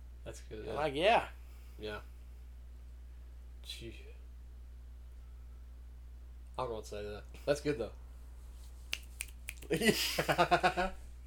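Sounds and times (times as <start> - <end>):
speech: 0.2 - 2.1, 3.6 - 4.2, 6.6 - 8.0, 9.6 - 11.0
little claps: 8.9 - 9.8.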